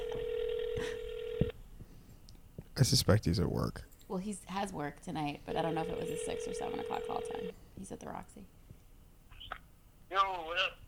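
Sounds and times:
phone call ringing through a speakerphone: 0.0s - 1.5s, 5.5s - 7.5s
low noise: 0.0s - 10.8s
speech: 0.8s - 1.5s, 2.8s - 8.6s.

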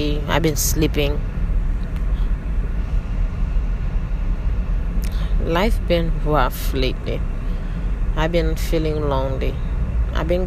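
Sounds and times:
car interior road and engine drone while driving to work: 0.0s - 10.4s
speech: 0.2s - 1.4s, 5.4s - 7.4s, 8.2s - 10.4s.

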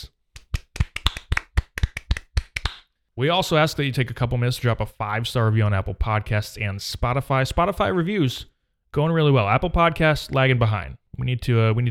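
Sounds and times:
hands clapping: 0.0s - 2.9s
speech: 3.2s - 11.8s.

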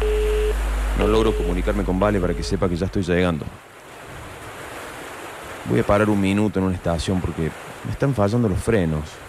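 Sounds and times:
heavy torrential rain: 0.0s - 5.7s
speech: 1.0s - 3.7s, 5.6s - 9.2s.

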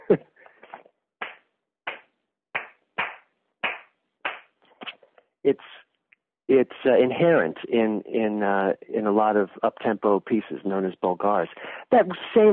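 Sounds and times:
speech: 0.1s - 0.3s, 5.5s - 5.8s, 6.5s - 12.5s
hand clapping a Bulgar rhythm: 1.2s - 4.5s.

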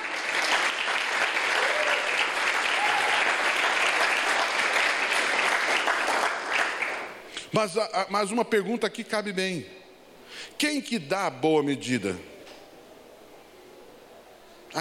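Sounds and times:
audience applauding: 0.0s - 7.2s
speech: 7.5s - 12.3s.

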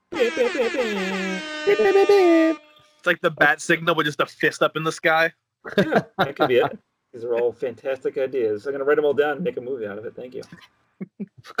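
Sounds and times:
boat horn blast: 0.1s - 2.8s
speech: 0.2s - 11.5s
laughter: 3.1s - 10.6s.

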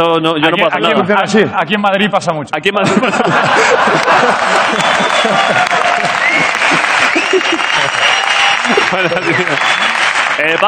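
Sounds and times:
speech: 0.0s - 6.2s, 7.3s - 10.6s
laughter: 2.8s - 10.2s
loud audience applause: 3.4s - 10.6s.

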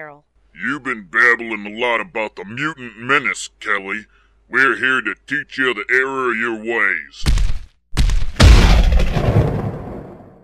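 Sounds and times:
speech: 0.0s - 7.4s
lightning bolt strike sound effect: 8.0s - 10.4s.

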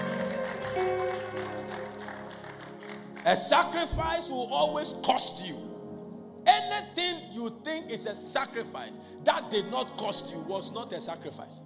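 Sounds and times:
audience clapping: 0.0s - 4.2s
speech: 3.2s - 5.7s, 7.0s - 11.6s.

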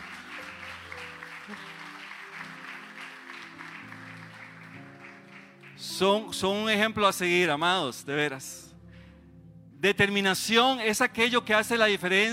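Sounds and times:
applause: 0.0s - 6.7s
speech: 1.5s - 1.7s, 5.9s - 8.6s, 9.8s - 12.3s.

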